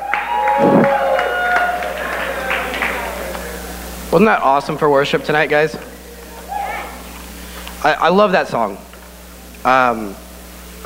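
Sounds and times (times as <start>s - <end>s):
crowd clapping: 0.0s - 4.2s
crowd cheering: 0.0s - 7.4s
speech: 4.1s - 5.9s, 7.8s - 8.8s, 9.6s - 10.2s.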